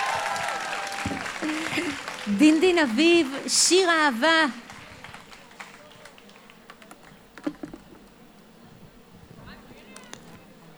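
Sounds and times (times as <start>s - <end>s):
audience applause: 0.0s - 3.5s, 4.4s - 6.8s
speech: 1.0s - 4.7s.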